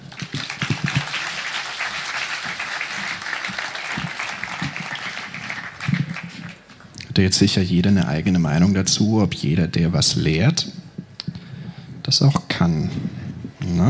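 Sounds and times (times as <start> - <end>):
audience applause: 0.0 - 6.9
speech: 7.2 - 10.7, 12.1 - 13.8.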